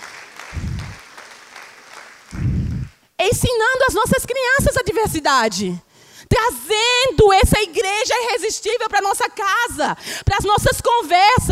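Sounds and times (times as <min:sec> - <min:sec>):
audience applause: 0:00.0 - 0:03.0
speech: 0:03.3 - 0:11.5.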